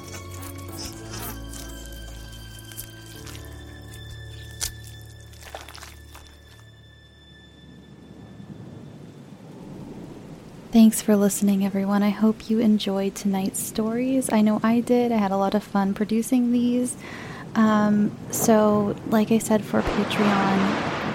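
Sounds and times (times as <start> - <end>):
many mouths chewing: 0.0 - 6.6
speech: 10.8 - 20.9.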